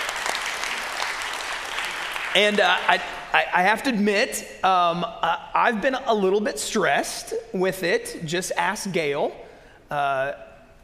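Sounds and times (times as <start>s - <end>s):
audience applause: 0.0s - 2.9s
speech: 2.3s - 10.4s.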